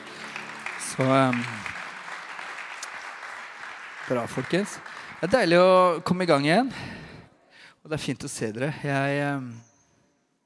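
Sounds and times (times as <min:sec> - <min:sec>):
audience applause: 0:00.0 - 0:06.2
speech: 0:01.0 - 0:01.7, 0:04.1 - 0:07.0, 0:07.8 - 0:09.7.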